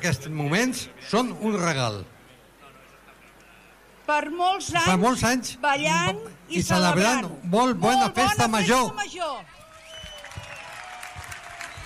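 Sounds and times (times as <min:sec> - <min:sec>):
speech: 0:00.0 - 0:02.2, 0:04.1 - 0:09.6
audience applause: 0:09.6 - 0:11.8.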